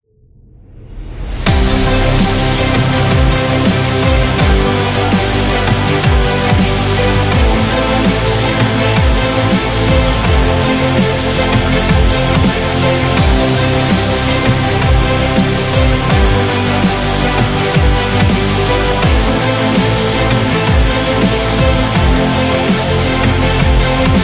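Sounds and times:
epic sports music: 1.0s - 24.2s.

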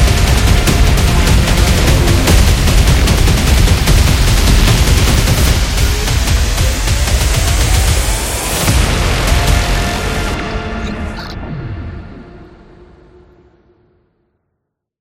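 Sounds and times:
fast epic drums: 0.0s - 10.4s.

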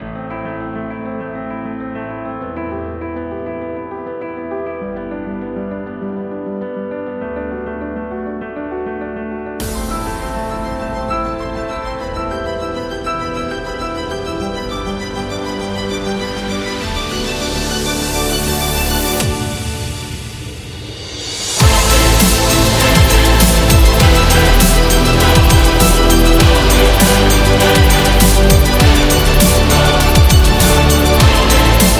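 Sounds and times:
epic promo music: 9.6s - 31.9s.

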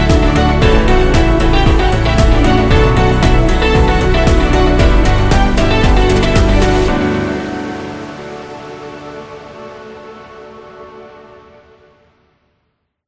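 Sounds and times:
positive corporate music: 0.0s - 10.1s.

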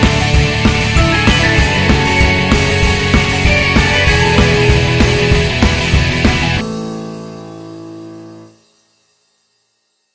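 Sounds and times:
happy motivational indie rock music: 0.0s - 6.6s.

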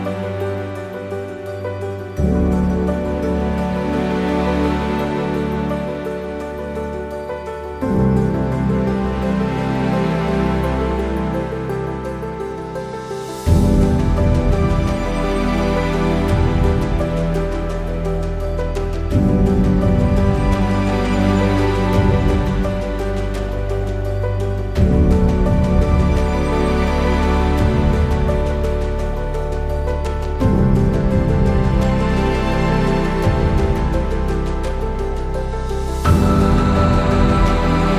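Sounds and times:
atmospheric piano: 0.0s - 37.9s.

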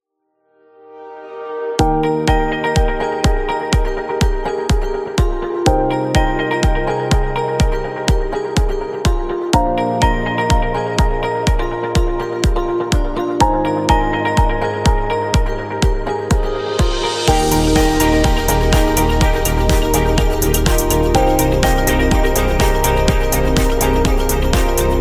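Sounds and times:
uplifting corporate music: 1.5s - 24.9s.

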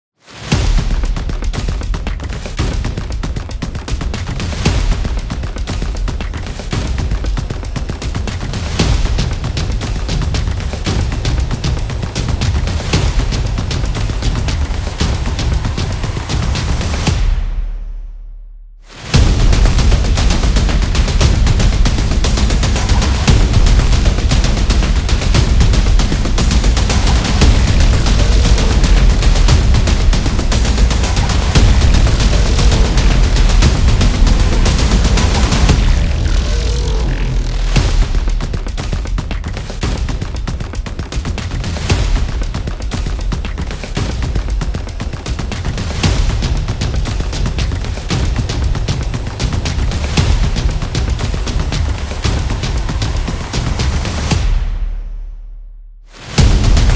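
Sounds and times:
dark action music: 0.3s - 18.1s, 18.8s - 55.4s, 56.0s - 56.9s.

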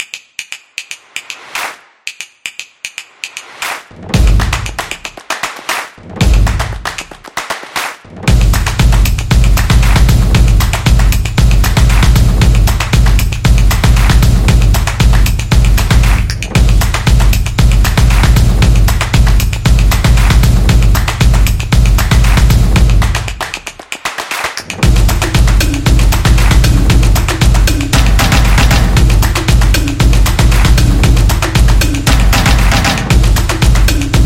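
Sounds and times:
upbeat samba drumming: 4.1s - 5.0s, 6.2s - 6.9s, 8.3s - 23.5s, 24.8s - 34.2s.

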